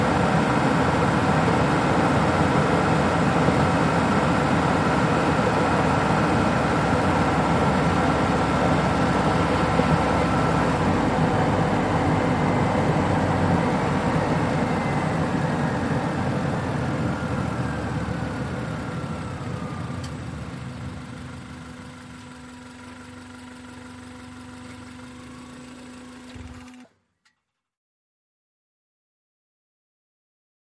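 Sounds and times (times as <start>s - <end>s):
compact car driving at 55 to 65 mph: 0.0s - 21.6s.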